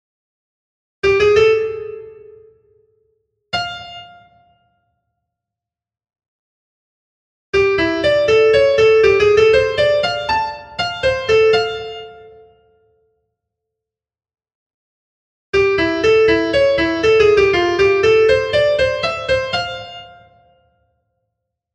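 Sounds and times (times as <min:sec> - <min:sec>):
musical phrases with blue notes minor pentatonic and chords: 0:07.6 - 0:12.3, 0:15.6 - 0:20.3.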